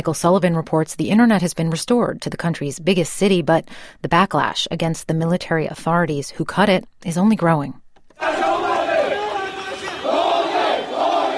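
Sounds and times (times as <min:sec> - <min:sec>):
speech: 0:00.0 - 0:08.5
protest crowd shouting anti-military slogans: 0:08.2 - 0:11.3.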